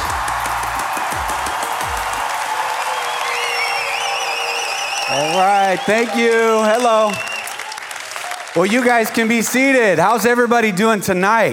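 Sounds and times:
loud passionate church applause: 0.0s - 10.5s
high whistles: 1.3s - 7.8s
speech: 5.1s - 7.3s, 8.6s - 11.5s.

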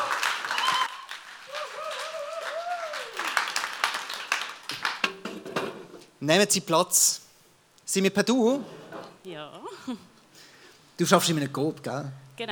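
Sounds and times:
audience applause: 0.0s - 5.3s
speech: 6.2s - 7.2s, 7.9s - 10.1s, 11.0s - 12.5s.

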